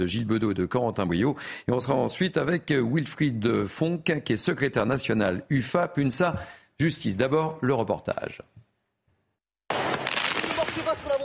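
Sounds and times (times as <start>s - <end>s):
speech: 0.0s - 8.6s
mortar fire at the Beauvais prison in France in daytime: 9.7s - 11.2s.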